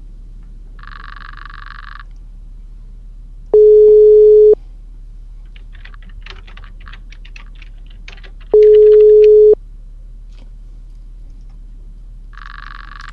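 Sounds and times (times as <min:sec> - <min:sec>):
phone ringback tone: 0:03.6 - 0:04.6, 0:08.6 - 0:09.6.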